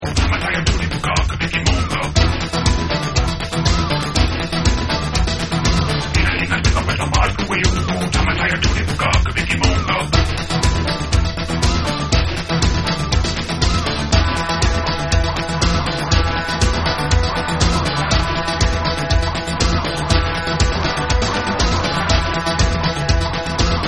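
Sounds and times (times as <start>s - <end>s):
guitars: 0.0s - 23.8s.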